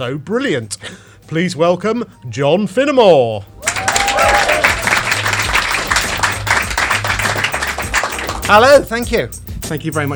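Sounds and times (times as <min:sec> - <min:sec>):
speech: 0:00.0 - 0:03.5, 0:08.5 - 0:10.1
audience applause: 0:03.6 - 0:08.5.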